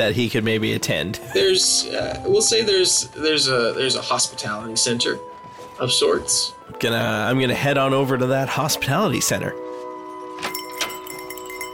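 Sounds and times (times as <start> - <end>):
speech: 0.0 - 9.6
door chime jingle: 10.0 - 11.7.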